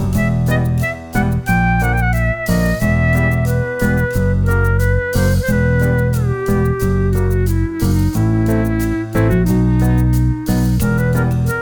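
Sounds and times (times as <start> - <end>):
sneaky comical klezmer clarinet: 0.1 - 11.6.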